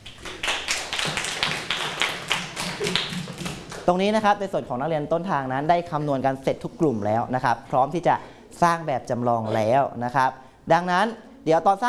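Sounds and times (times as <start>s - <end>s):
classroom group clapping in rhythm: 0.0s - 4.0s
speech: 3.9s - 11.8s.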